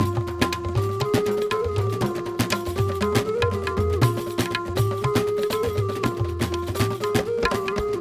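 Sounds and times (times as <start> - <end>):
percussion: 0.0 - 7.9.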